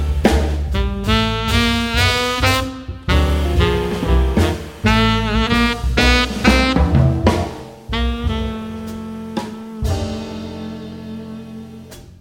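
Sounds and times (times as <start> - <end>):
tenor saxophone playing a blues etude: 0.0 - 12.1.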